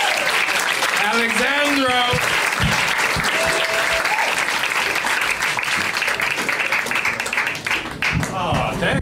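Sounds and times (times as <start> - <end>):
whoops: 0.0 - 0.4, 3.2 - 4.5
audience applause: 0.0 - 9.0.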